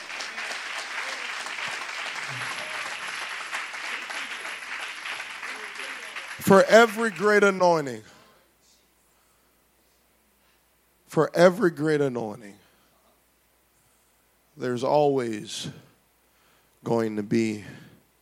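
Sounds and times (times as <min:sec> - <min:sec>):
audience clapping: 0:00.0 - 0:08.1
speech: 0:06.4 - 0:08.1, 0:11.2 - 0:12.6, 0:14.6 - 0:15.8, 0:16.8 - 0:17.8.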